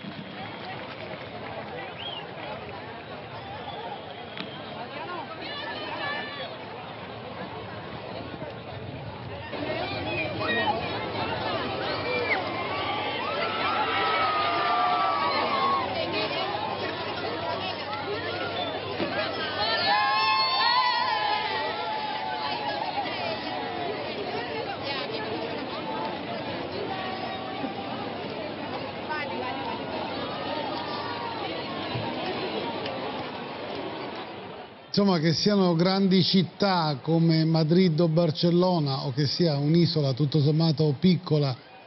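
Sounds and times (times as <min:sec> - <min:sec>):
crowd cheering welcoming the pope: 0:00.0 - 0:08.6, 0:09.2 - 0:41.8
speech: 0:35.0 - 0:41.6.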